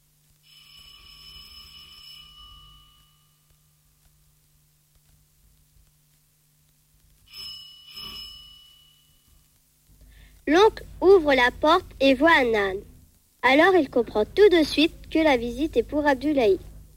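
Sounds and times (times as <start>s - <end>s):
doorbell ringing: 0.5s - 3.8s, 7.3s - 9.4s
speech: 10.5s - 16.7s.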